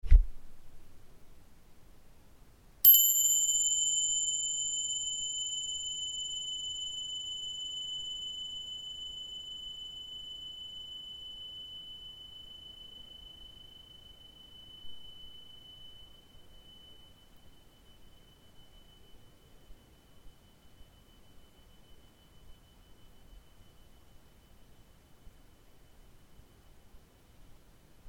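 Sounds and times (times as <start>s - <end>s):
bells ringing: 2.9s - 16.3s.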